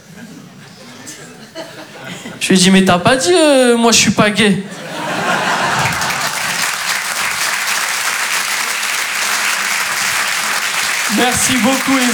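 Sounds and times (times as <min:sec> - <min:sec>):
laughter: 0:00.0 - 0:02.4, 0:04.7 - 0:12.1
speech: 0:00.2 - 0:00.6, 0:01.2 - 0:04.8, 0:11.4 - 0:12.1
audience applause for a comedian after a stand-up set: 0:05.0 - 0:12.1.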